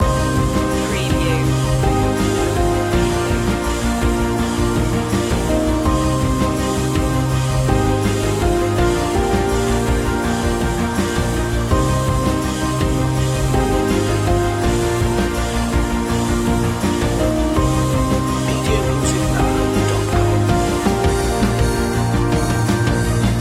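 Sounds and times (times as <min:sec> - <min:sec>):
music loop: 0:00.0 - 0:15.0, 0:15.7 - 0:23.3.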